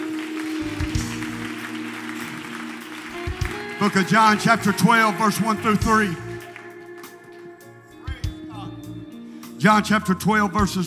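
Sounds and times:
audience clapping: 0:00.0 - 0:07.9
speech: 0:03.8 - 0:06.3, 0:09.6 - 0:10.8.

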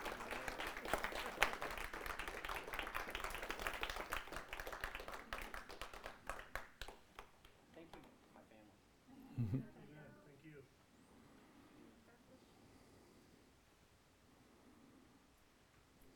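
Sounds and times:
audience clapping: 0:00.0 - 0:08.2.

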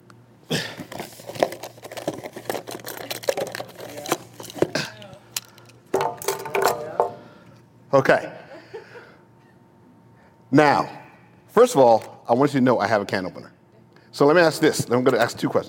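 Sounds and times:
crinkling and rustling: 0:00.8 - 0:05.7
speech: 0:07.9 - 0:08.4, 0:10.5 - 0:11.0, 0:11.6 - 0:15.6.

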